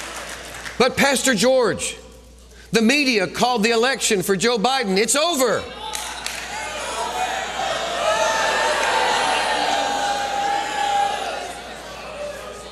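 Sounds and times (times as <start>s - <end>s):
speech: 0.8s - 2.0s, 2.7s - 5.8s
crowd cheering and shouting: 5.7s - 12.7s.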